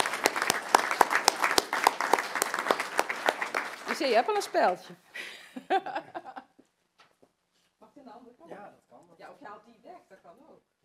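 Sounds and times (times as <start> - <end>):
audience applause: 0.0 - 4.8
speech: 4.0 - 6.2.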